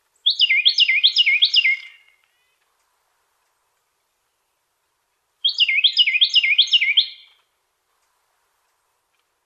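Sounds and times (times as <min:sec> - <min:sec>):
Carolina wren singing repeated two-part phrases: 0:00.2 - 0:02.6, 0:05.4 - 0:07.4.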